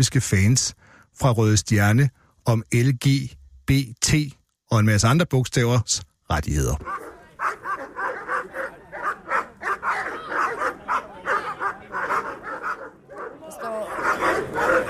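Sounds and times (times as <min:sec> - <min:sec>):
speech: 0:00.0 - 0:07.0
voices murmuring: 0:06.4 - 0:14.8
police dogs held by police officers barking at a man in Copenhagen: 0:06.8 - 0:14.8.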